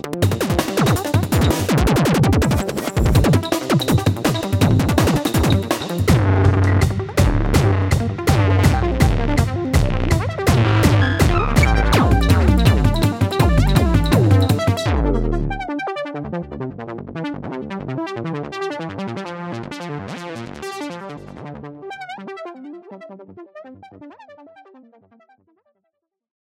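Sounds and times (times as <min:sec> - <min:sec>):
glitch breakbeat: 0:00.0 - 0:15.6.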